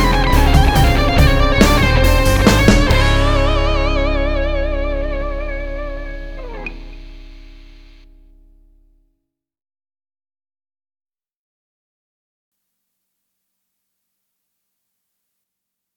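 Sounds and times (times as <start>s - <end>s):
enigmatic minor music: 0.0s - 9.0s.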